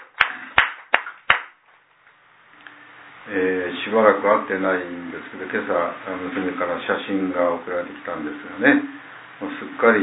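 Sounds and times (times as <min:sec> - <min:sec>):
enthusiastic applause: 0:00.0 - 0:01.5
speech: 0:03.3 - 0:10.0.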